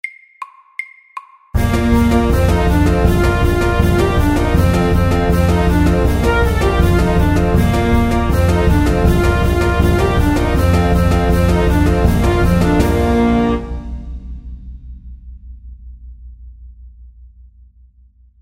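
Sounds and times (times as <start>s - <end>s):
fast cancan music at 160 BPM: 0.0s - 14.1s.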